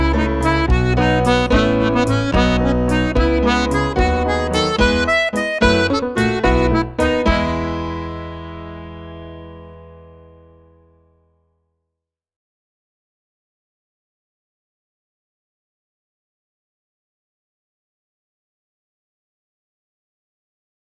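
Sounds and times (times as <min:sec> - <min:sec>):
treble jig tune: 0:00.0 - 0:09.2.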